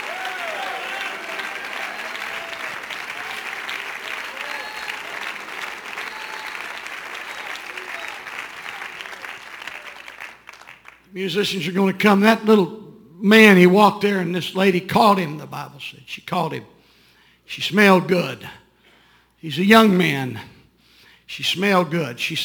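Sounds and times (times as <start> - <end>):
audience clapping hands: 0.0 - 11.1
speech: 11.2 - 16.8, 17.5 - 18.6, 19.4 - 20.5, 21.3 - 22.4.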